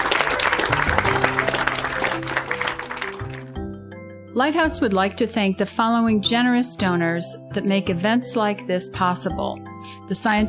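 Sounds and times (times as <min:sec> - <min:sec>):
audience round of applause: 0:00.0 - 0:03.6
speech: 0:04.4 - 0:10.4.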